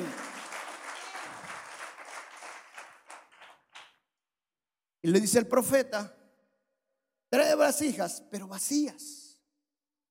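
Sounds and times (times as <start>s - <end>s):
audience applauding: 0.0s - 4.0s
speech: 5.0s - 6.2s, 7.5s - 9.2s.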